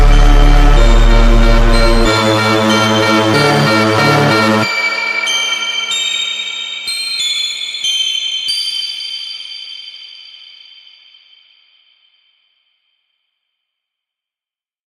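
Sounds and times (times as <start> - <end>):
slowed reverb music: 0.0 - 6.9.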